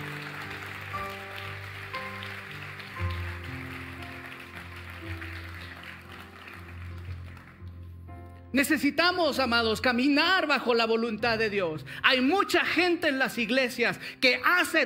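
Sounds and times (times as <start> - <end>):
audience applauding loudly: 0.0 - 8.0
speech: 8.6 - 14.8.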